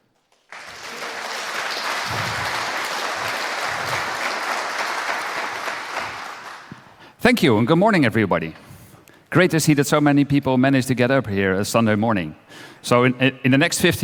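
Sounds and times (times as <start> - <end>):
audience applause: 0.2 - 7.0
speech: 7.3 - 8.6, 9.3 - 14.0.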